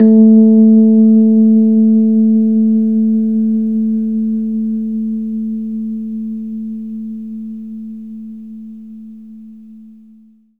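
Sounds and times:
Rhodes electric piano: 0.0s - 5.8s.

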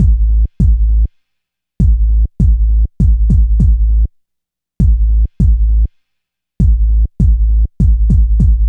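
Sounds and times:
low kick drum: 0.0s - 1.1s, 1.8s - 4.0s, 4.8s - 5.9s, 6.6s - 8.6s.

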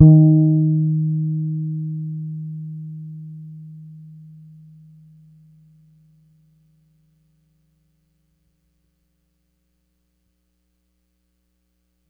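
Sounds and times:
hard bass guitar note D sharp 4 on Pedulla Thunderbass: 0.0s - 5.2s.

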